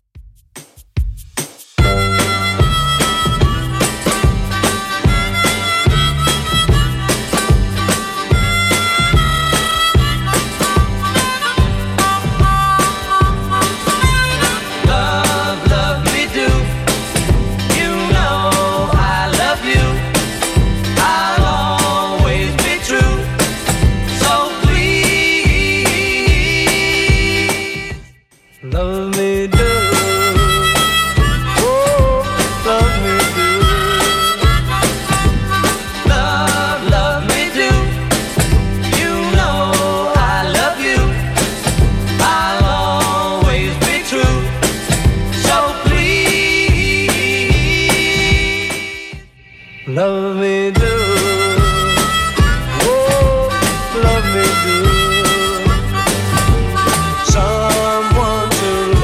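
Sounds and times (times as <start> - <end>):
1960s style music: 0.4 - 49.2, 50.7 - 59.0.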